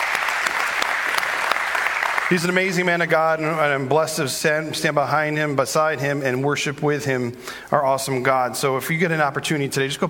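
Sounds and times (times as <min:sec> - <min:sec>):
audience applause: 0:00.0 - 0:03.0
speech: 0:02.3 - 0:10.0.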